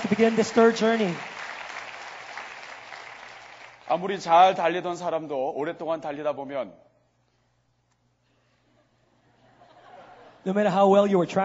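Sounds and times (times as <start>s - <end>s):
speech: 0.0s - 1.4s, 3.9s - 6.9s, 10.4s - 11.4s
audience applause: 0.0s - 3.9s.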